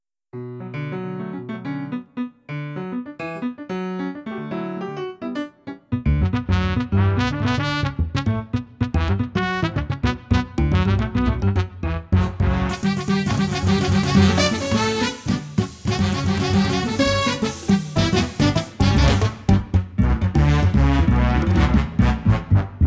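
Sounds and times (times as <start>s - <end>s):
jazz music: 0.4s - 22.8s.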